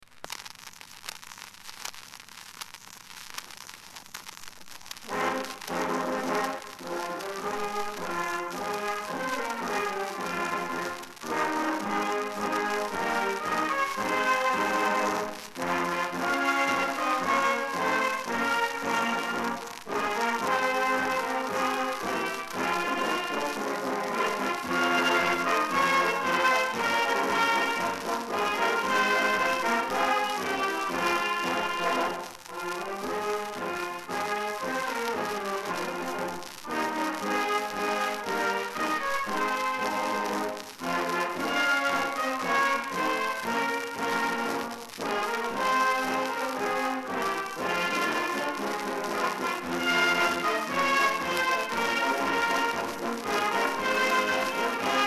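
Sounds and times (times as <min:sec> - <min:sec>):
brass band playing: 0:05.1 - 0:55.0.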